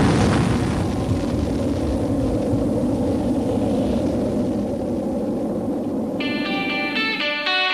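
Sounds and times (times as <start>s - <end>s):
nuclear explosion sound effect: 0.0s - 7.6s.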